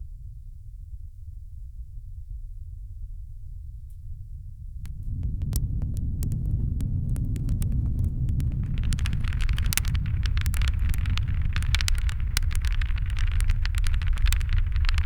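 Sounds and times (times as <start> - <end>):
paper burning: 4.8 - 15.0.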